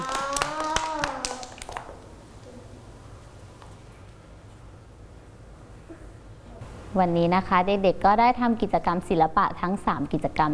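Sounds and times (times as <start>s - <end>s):
group of children clapping: 0.0s - 2.1s
speech: 7.0s - 10.5s.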